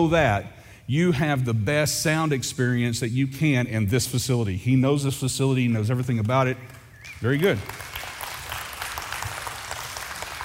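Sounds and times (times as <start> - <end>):
speech: 0.0 - 7.9
crowd applauding: 7.0 - 10.4.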